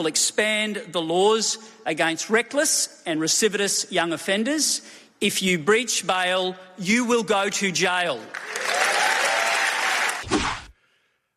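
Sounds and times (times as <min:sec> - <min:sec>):
speech: 0:00.0 - 0:08.9
audience applause at an LNP conference: 0:08.3 - 0:10.2.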